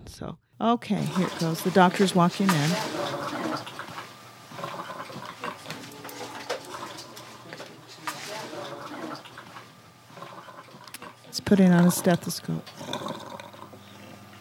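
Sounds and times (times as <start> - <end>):
speech: 0.1 - 3.2, 11.5 - 12.8
death rattle of a dying person: 3.1 - 11.2, 12.7 - 14.2.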